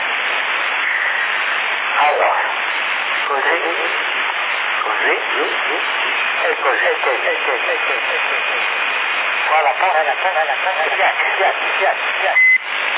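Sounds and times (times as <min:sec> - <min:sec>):
CB radio hiss: 0:00.0 - 0:12.9
faint CB radio whine: 0:00.0 - 0:12.9
voice over CB radio channel in Sassari with echo effect: 0:02.0 - 0:02.6, 0:03.2 - 0:04.2, 0:04.8 - 0:08.8, 0:09.4 - 0:12.5
speech: 0:03.3 - 0:04.1, 0:04.8 - 0:12.4.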